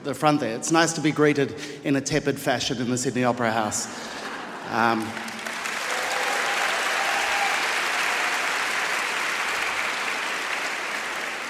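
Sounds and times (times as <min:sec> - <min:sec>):
speech: 0:00.0 - 0:05.3
audience applause in a theatre: 0:04.7 - 0:11.4.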